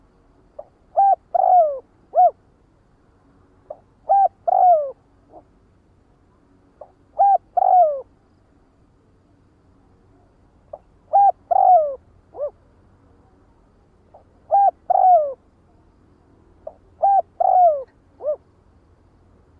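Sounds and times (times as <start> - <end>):
spotted dove cooing: 0.6 - 2.4, 3.7 - 5.5, 6.8 - 8.1, 10.7 - 12.6, 14.1 - 15.4, 16.6 - 18.5.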